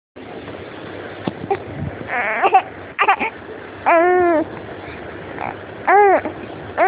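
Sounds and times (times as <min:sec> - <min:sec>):
hungry baby boy: 0:01.4 - 0:06.8.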